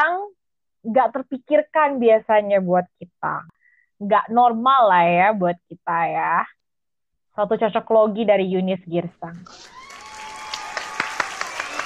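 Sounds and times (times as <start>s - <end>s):
speech: 0.8s - 6.6s, 7.4s - 9.8s
hand claps: 9.9s - 11.8s.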